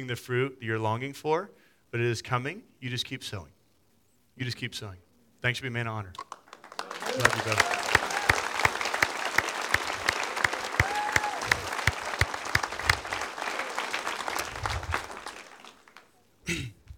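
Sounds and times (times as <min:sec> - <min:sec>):
speech: 0:00.0 - 0:03.6, 0:04.4 - 0:06.4, 0:07.2 - 0:07.8
audience applause: 0:06.2 - 0:16.2.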